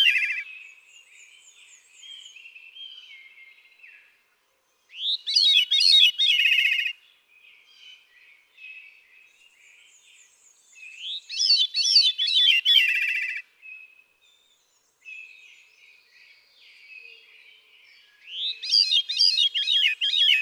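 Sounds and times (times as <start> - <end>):
veery bird call: 0.0 - 4.2, 4.8 - 20.4.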